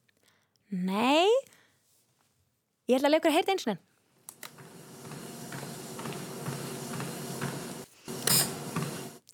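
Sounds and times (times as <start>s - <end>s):
speech: 0.7s - 1.5s, 2.9s - 3.9s
treadmill running with motor hum: 4.3s - 9.2s
short hissing burst: 7.8s - 9.2s.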